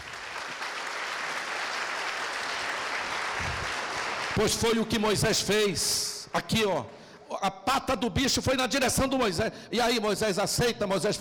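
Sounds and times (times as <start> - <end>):
crowd applauding: 0.0 - 5.0
speech: 4.4 - 11.1.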